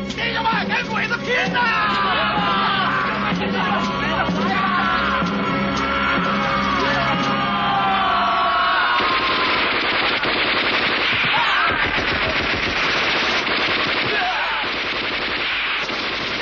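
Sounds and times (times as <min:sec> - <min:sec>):
people yelling and shouting: 0:00.1 - 0:10.1, 0:11.1 - 0:12.6, 0:13.9 - 0:14.8
speech: 0:01.3 - 0:01.8
machine gun fire in a wartime drama battle: 0:08.9 - 0:16.3.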